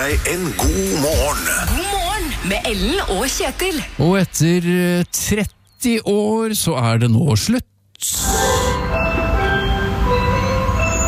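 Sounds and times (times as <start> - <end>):
speech: 0.0 - 8.5
ice cream van signal: 8.2 - 11.0.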